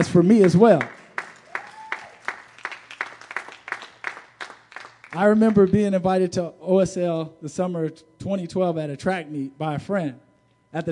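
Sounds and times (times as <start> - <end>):
speech: 0.0 - 1.0, 5.2 - 10.9
audience clapping: 0.0 - 5.8.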